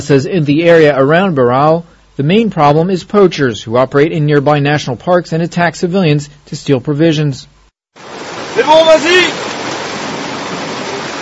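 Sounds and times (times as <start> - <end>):
speech: 0.0 - 9.4
heavy rain falling: 8.0 - 11.2
person calling: 8.6 - 9.4.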